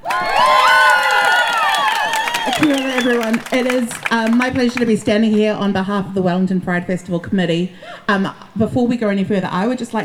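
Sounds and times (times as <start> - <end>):
crowd cheering at a Wellington Pride Festival event: 0.0 - 4.7
speech: 3.0 - 10.0.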